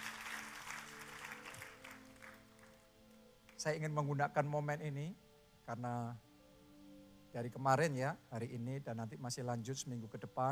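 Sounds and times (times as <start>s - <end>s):
enthusiastic crowd applause: 0.0s - 2.9s
speech: 3.6s - 6.3s, 7.3s - 10.4s.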